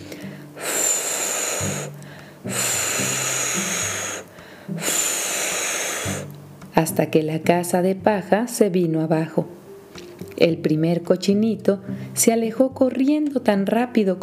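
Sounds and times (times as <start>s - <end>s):
voice imitating a wolf huffing and puffing: 0.0s - 6.3s
low humming tones: 0.0s - 6.8s
speech: 1.6s - 2.7s, 6.9s - 9.6s, 10.4s - 14.2s.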